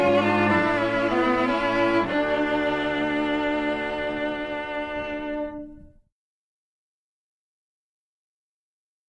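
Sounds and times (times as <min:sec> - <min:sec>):
violin playing a sinfonia in D minor: 0:00.0 - 0:06.1.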